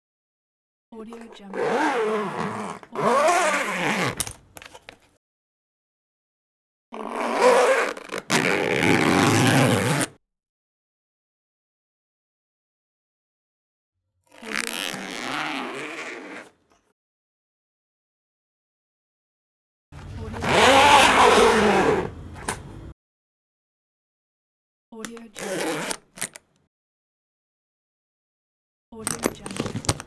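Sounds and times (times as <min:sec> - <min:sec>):
zipper: 0:01.1 - 0:05.0, 0:07.0 - 0:10.2, 0:14.3 - 0:16.8, 0:20.0 - 0:22.8, 0:25.1 - 0:26.4, 0:29.0 - 0:30.0.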